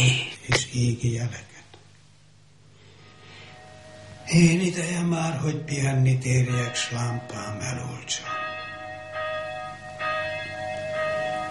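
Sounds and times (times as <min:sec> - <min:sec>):
speech: 0:00.0 - 0:01.5, 0:04.3 - 0:08.4
church bell tolling for morning mass: 0:03.7 - 0:11.4.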